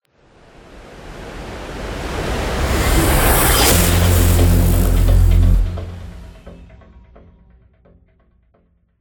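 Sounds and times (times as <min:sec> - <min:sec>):
transition end sound: 0:01.8 - 0:07.5.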